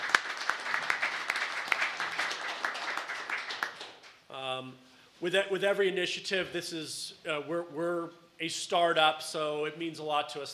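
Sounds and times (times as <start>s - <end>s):
audience applause: 0.0s - 4.0s
speech: 5.2s - 10.5s.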